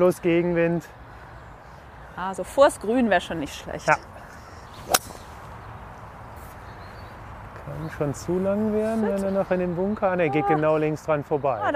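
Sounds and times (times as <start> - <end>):
speech: 0.0 - 1.0, 2.2 - 4.1, 7.8 - 11.7
golf club striking a ball on an approach shot into a headwind: 4.8 - 5.7.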